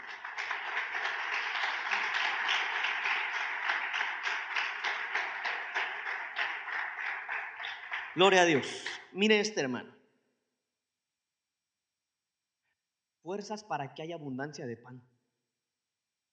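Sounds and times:
audience applauding: 0:00.0 - 0:09.0
speech: 0:08.2 - 0:10.0, 0:13.3 - 0:15.1.

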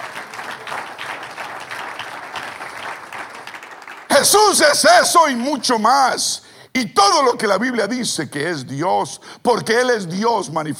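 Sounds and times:
audience applause: 0:00.0 - 0:04.8
speech: 0:04.2 - 0:10.7.

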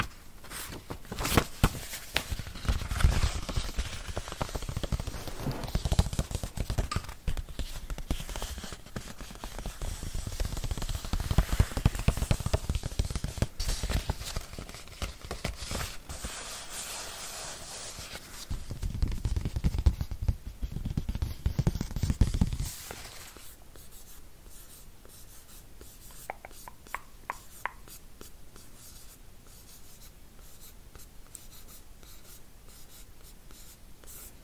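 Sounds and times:
tapping, tracing and scratching on a book: 0:01.1 - 0:29.1.

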